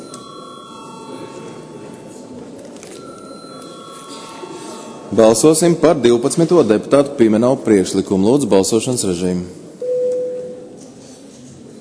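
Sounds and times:
parliament chamber electric bell signalling a vote: 0.0s - 5.8s
low murmur of the chamber: 0.0s - 11.7s
speech: 5.1s - 9.6s.

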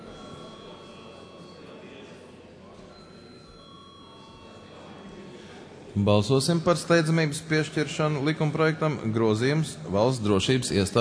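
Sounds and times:
bell rung to call a vote: 0.0s - 2.3s, 2.9s - 5.6s
faint murmur of voices: 0.0s - 10.9s
speech: 6.0s - 10.9s.

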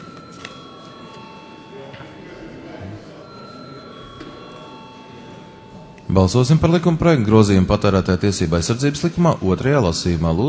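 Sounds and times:
parliament chamber bell ringing before a vote: 0.0s - 7.0s
speech: 6.2s - 10.4s.

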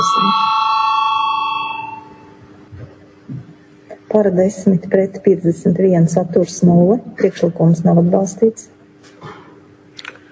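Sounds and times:
parliament voting bell: 0.0s - 2.4s
speech: 4.2s - 8.8s.

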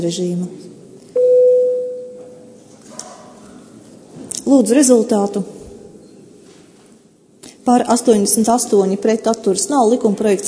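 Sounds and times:
speech: 0.0s - 0.8s, 4.5s - 5.6s, 7.7s - 10.4s
electronic parliament chamber bell before vote: 1.2s - 2.4s.

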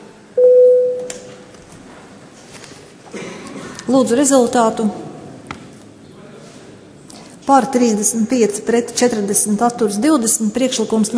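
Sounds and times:
parliament voting bell electronic tone: 0.4s - 1.2s
speech: 3.1s - 5.1s, 7.5s - 11.1s.

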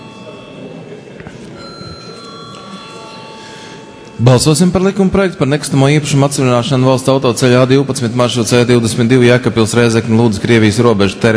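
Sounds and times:
parliament chamber vote bell ringing: 0.0s - 7.6s
speech: 4.2s - 11.3s.

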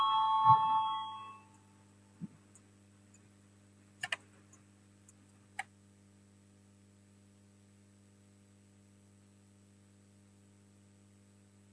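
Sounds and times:
voting bell chime in the Latvian parliament: 0.0s - 1.5s
faint clicks: 4.0s - 5.7s.

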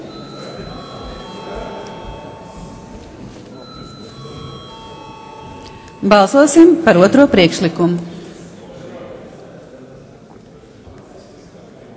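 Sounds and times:
parliament chamber voting bell ringing: 0.0s - 7.8s
murmur of voices: 0.0s - 11.9s
speech: 6.0s - 8.1s.

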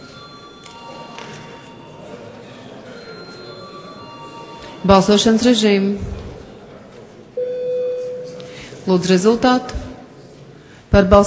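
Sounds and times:
parliament voting bell ringing: 0.0s - 5.7s, 7.4s - 8.6s
speech: 4.8s - 6.2s, 8.9s - 9.8s, 10.9s - 11.2s.

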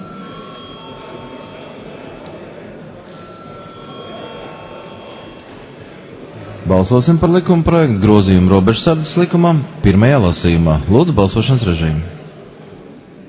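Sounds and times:
electronic chamber bell ringing in the Latvian parliament to call a vote: 0.0s - 2.2s, 3.0s - 6.1s, 7.1s - 9.7s
speech: 6.6s - 12.2s.

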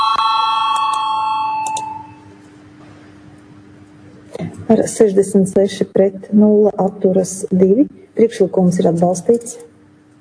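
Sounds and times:
voting bell in parliament ringing: 0.0s - 2.2s
speech: 4.5s - 9.7s.

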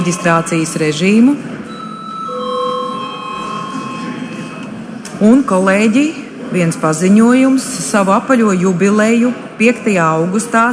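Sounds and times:
speech: 0.0s - 1.6s, 5.2s - 10.7s
parliament session bell ringing: 1.7s - 4.7s.

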